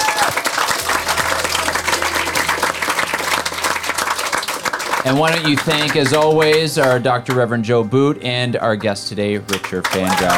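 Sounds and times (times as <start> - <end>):
low hum: 0.0 - 7.0
audience applause: 0.0 - 7.4, 9.5 - 10.3
speech: 5.0 - 10.3.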